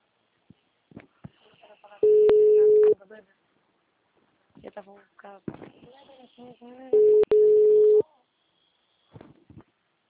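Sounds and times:
telephone call tone beeps: 2.0 - 3.0, 7.0 - 8.0
speech: 4.7 - 7.3.

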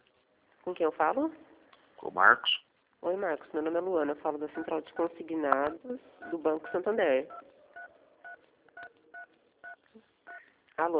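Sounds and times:
low hiss: 0.0 - 10.9
speech: 0.6 - 7.6, 10.8 - 10.9
phone keypad dual tone beeps: 4.6 - 10.4.

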